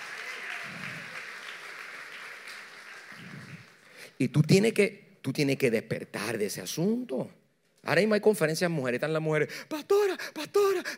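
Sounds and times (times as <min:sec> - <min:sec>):
applause: 0:00.0 - 0:04.2
speech: 0:04.2 - 0:10.9.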